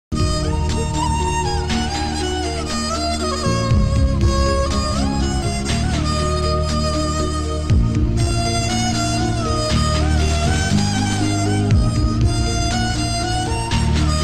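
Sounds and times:
sad climax background music: 0:00.2 - 0:14.2.

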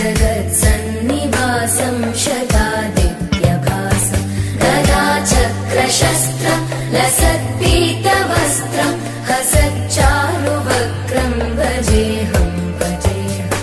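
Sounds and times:
Hindu devotional chant ringtone: 0:00.2 - 0:13.5.

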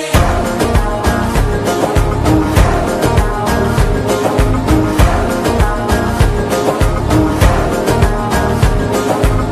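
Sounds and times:
mass music ringtone: 0:00.1 - 0:09.5.

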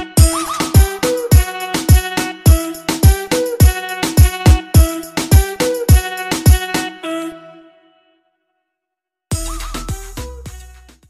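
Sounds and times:
lovely background music ringtone: 0:00.2 - 0:07.8, 0:09.3 - 0:11.0.

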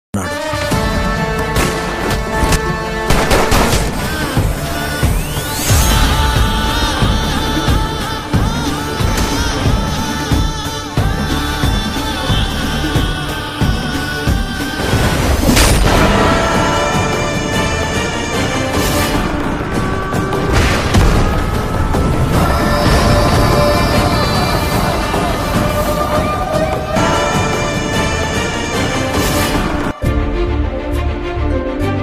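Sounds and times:
trailer background music ringtone: 0:00.2 - 0:32.0.

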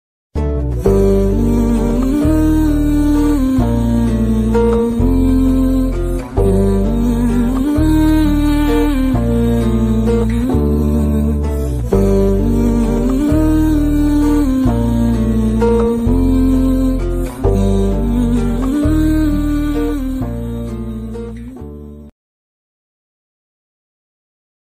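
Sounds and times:
sad background music ringtone: 0:00.6 - 0:22.1.

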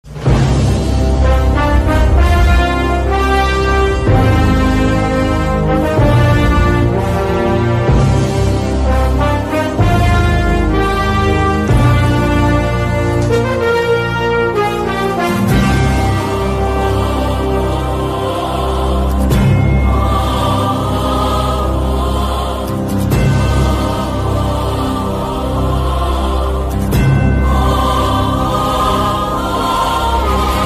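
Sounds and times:
interval background music: 0:00.0 - 0:30.6.

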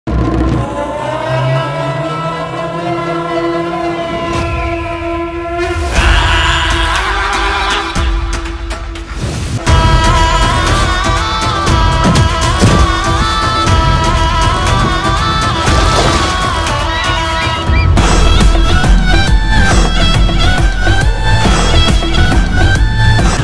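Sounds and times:
mass background music: 0:00.1 - 0:23.4.

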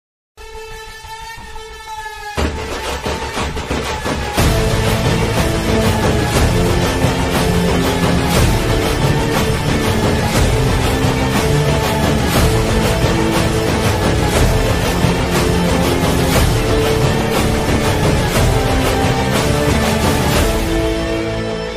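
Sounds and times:
drum background music: 0:02.4 - 0:21.6.

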